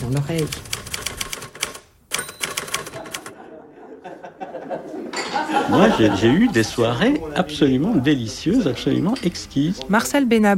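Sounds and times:
old Remington typewriter keys clacking: 0:00.0 - 0:03.3
speech: 0:00.1 - 0:00.8, 0:05.7 - 0:10.5
laughter: 0:02.9 - 0:07.4.

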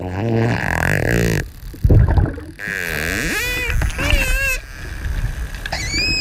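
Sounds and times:
watery noise: 0:00.0 - 0:06.1
dolphin squeaky whistles: 0:05.7 - 0:06.1.

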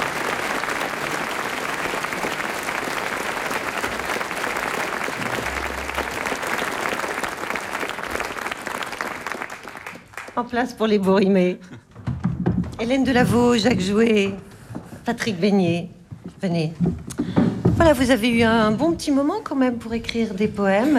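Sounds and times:
audience applause: 0:00.0 - 0:10.5
speech: 0:10.4 - 0:11.8, 0:12.8 - 0:14.5, 0:15.1 - 0:17.1, 0:17.8 - 0:20.9.

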